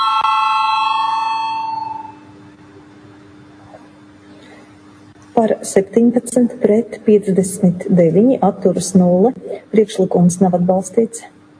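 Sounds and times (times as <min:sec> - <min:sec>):
parliament voting bell: 0:00.0 - 0:02.3
speech: 0:05.4 - 0:11.4.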